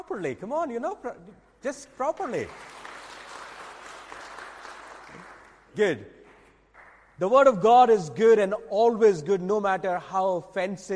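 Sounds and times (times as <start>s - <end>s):
speech: 0.1s - 2.8s, 5.8s - 6.2s, 7.2s - 10.9s
audience clapping: 2.0s - 7.2s.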